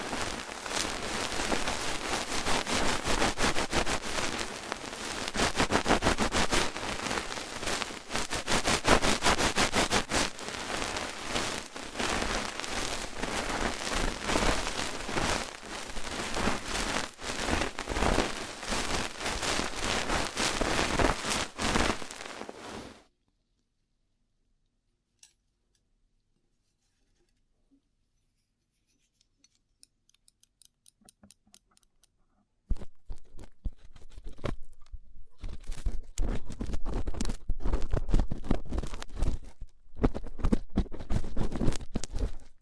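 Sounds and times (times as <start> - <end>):
rough ear cleaning scratchy crackle: 0.0 - 23.1, 32.7 - 42.6.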